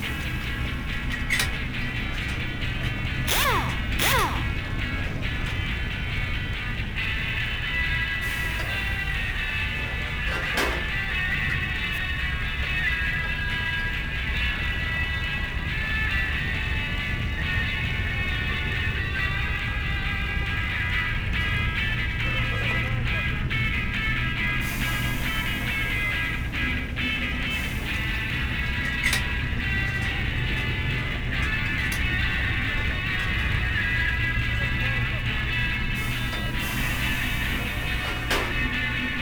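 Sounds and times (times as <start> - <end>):
garage music: 0.0 - 39.2.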